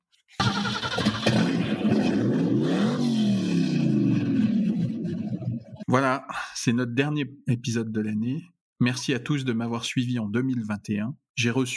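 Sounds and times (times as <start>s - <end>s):
De Tomaso Pantera sports car engine revving: 0.7s - 5.2s
speech: 6.0s - 11.7s.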